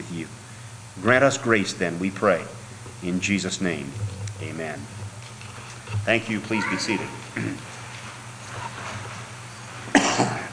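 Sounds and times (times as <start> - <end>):
speech: 0.1 - 0.4, 1.0 - 5.0, 6.0 - 7.7
low hum: 1.7 - 9.7
man coughing: 9.9 - 10.5.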